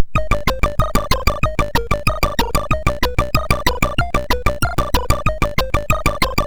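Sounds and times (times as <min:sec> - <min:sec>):
MOS6581R2 SID chip synth: 0:00.0 - 0:06.4.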